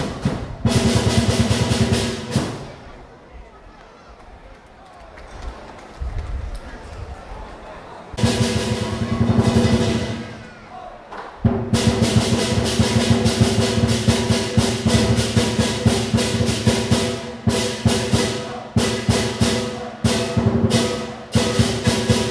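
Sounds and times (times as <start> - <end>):
lion dance in Singapore: 0.0 - 3.0, 8.2 - 22.2.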